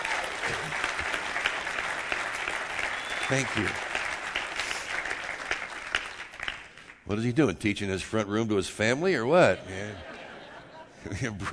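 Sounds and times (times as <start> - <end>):
audience applause: 0.0 - 7.0
speech: 3.3 - 3.8, 7.1 - 10.1, 11.0 - 11.5
laughter: 9.3 - 11.5.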